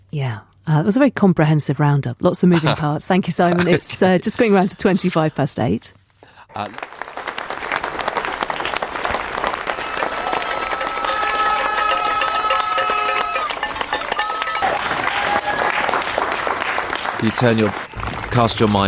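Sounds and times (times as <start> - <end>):
speech: 0.1 - 7.3, 17.2 - 18.8
people across the UK applauding health workers: 6.5 - 18.8.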